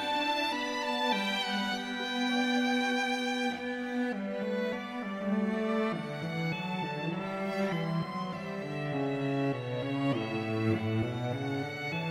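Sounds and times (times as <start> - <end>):
string trio playing a minuet: 0.0 - 12.0.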